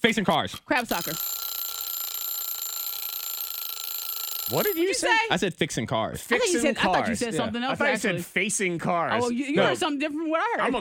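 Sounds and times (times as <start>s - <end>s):
speech: 0.0s - 1.4s, 4.5s - 10.8s
game timer buzzer: 0.9s - 4.9s.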